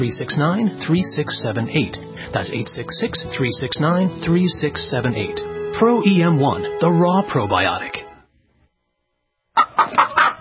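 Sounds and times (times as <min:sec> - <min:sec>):
speech: 0:00.0 - 0:08.0
backyard meat chickens clucking: 0:09.6 - 0:10.4.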